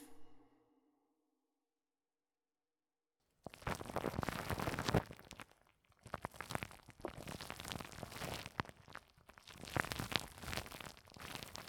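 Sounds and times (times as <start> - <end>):
ear wrapping ASMR sounds: 3.4 - 11.6.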